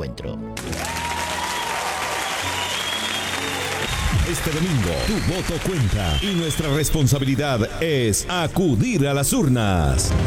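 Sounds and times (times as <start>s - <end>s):
speech: 0.0s - 1.0s, 4.3s - 10.2s
audience applause: 0.6s - 7.5s.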